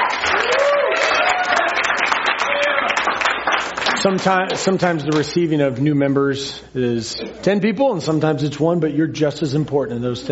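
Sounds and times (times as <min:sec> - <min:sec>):
audience applause: 0:00.0 - 0:04.8
faint tonal whoops or cheers: 0:00.2 - 0:03.0
speech: 0:04.0 - 0:10.3.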